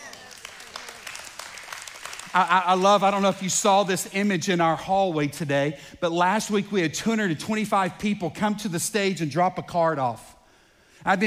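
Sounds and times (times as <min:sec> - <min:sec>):
audience clapping: 0:00.0 - 0:04.3
speech: 0:02.3 - 0:10.3, 0:11.0 - 0:11.2.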